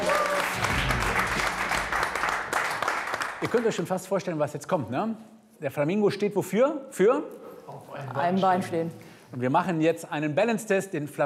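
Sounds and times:
applause: 0.0 - 4.0
speech: 3.4 - 11.2.

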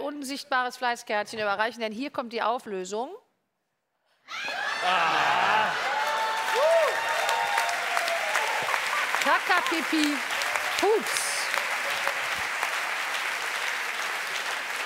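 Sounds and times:
speech: 0.2 - 3.2, 4.3 - 5.9, 9.2 - 11.2
laughter: 4.5 - 6.0, 8.4 - 9.8
applause: 5.5 - 14.8.

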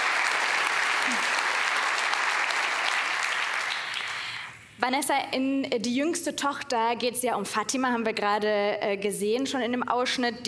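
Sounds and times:
audience applause: 0.0 - 4.5
speech: 4.8 - 10.4.

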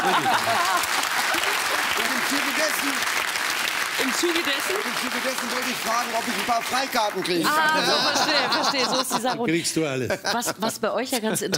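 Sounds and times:
speech: 0.0 - 1.7, 2.3 - 3.3, 4.0 - 11.5
laughter: 0.0 - 2.7, 7.3 - 11.5
applause: 0.0 - 8.4.

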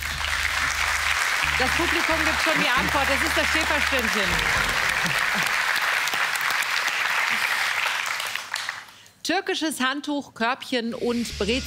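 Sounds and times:
audience applause: 0.0 - 8.9
speech: 1.6 - 5.6, 9.3 - 11.6.

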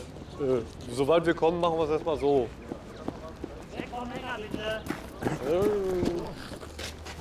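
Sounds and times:
speech: 0.4 - 2.7, 4.0 - 6.4
Mongolian horses' hooves during loading: 2.3 - 7.1.

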